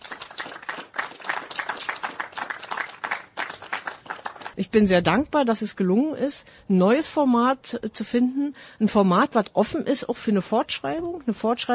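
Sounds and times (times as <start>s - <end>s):
crowd applauding: 0.0s - 4.6s
speech: 4.6s - 11.7s.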